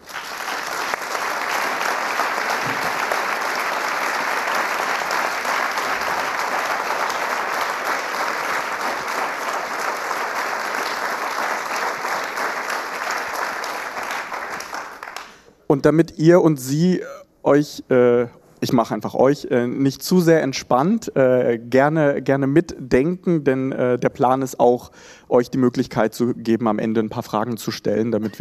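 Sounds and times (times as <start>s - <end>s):
audience applause: 0.0s - 15.4s
speech: 15.8s - 28.3s.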